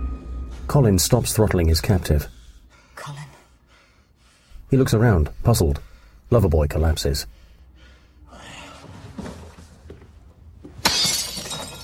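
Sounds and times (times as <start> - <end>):
speech: 0.7 - 2.4, 4.7 - 7.4
window glass shattering from a punch: 10.8 - 11.8.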